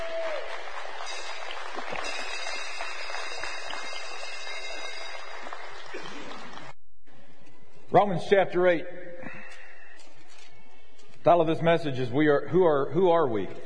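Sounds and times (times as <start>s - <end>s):
audience applause: 0.0s - 6.7s
speech: 7.9s - 9.0s, 11.2s - 13.6s.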